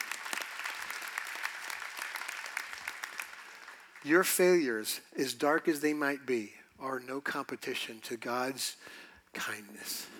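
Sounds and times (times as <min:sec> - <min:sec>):
audience applause: 0:00.0 - 0:04.0
speech: 0:04.0 - 0:10.1.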